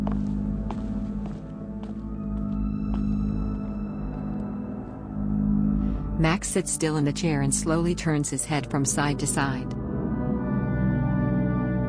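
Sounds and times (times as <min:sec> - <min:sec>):
footsteps of a man walking out of a room: 0:00.0 - 0:03.7
sustained low droning music: 0:00.0 - 0:11.8
speech: 0:06.2 - 0:09.8.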